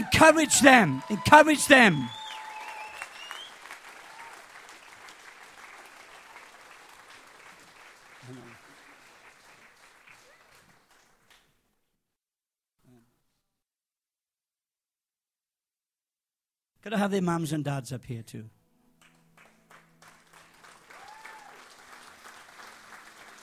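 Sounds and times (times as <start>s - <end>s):
crowd clapping: 0.0s - 11.6s, 19.0s - 23.4s
speech: 0.2s - 2.2s, 16.8s - 18.6s.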